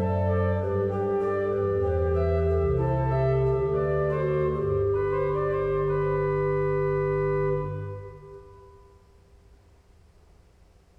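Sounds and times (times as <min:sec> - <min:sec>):
organ playing: 0:00.0 - 0:09.0.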